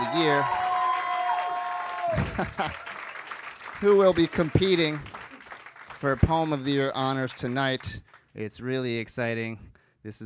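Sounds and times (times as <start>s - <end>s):
voices whooping and cheering: 0.0s - 2.9s
applause: 0.0s - 8.4s
speech: 0.3s - 0.6s, 2.4s - 2.9s, 3.8s - 5.1s, 6.0s - 10.2s
laughter: 2.1s - 3.0s.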